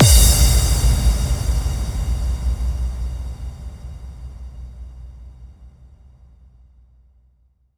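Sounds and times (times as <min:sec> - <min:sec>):
bass drum FX kicks: 0:00.0 - 0:05.7.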